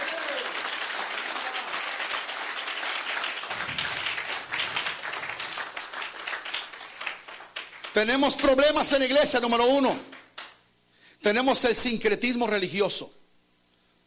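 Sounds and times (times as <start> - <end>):
audience applauding: 0.0 - 8.6
speech: 8.0 - 10.1, 11.2 - 13.2.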